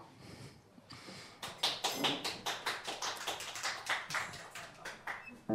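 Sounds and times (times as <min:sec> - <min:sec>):
applause: 0:01.2 - 0:05.4.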